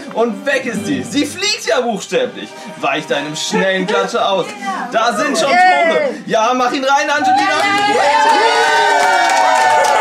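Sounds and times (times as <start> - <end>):
speech: 0.2 - 9.6
crowd cheering for a Gryffindor goal in a Quidditch match: 7.1 - 9.9.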